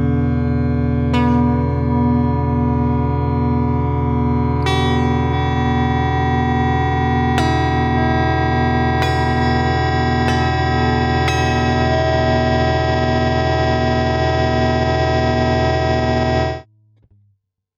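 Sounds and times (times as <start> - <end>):
wall of sound synth in latch mode: 0.2 - 16.7.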